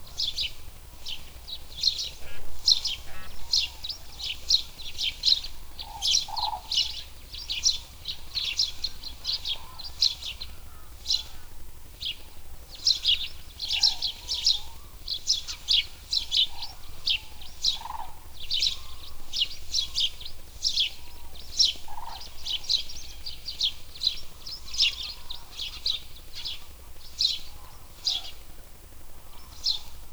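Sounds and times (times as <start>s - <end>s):
house sparrows in Görestanya: 0.0s - 30.1s.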